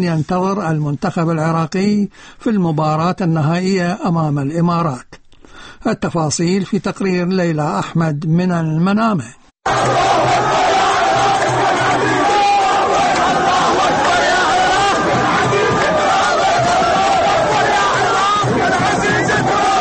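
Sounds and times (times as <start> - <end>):
speech: 0.0 - 5.2, 5.8 - 10.4
Iraqi football fans chanting and cheering in the main stadium in Bahrain: 9.6 - 19.7.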